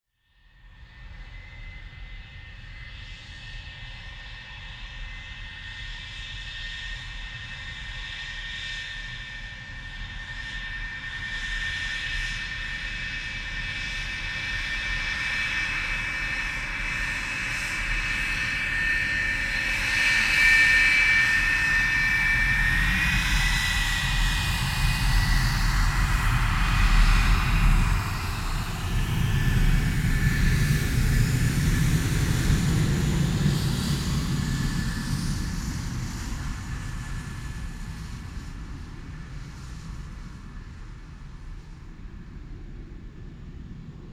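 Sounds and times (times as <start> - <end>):
jet on runway: 0.8 - 44.1.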